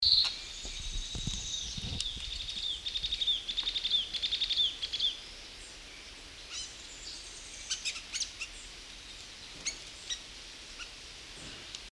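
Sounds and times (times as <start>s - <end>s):
white-crested elaenia songs: 0.0s - 11.8s.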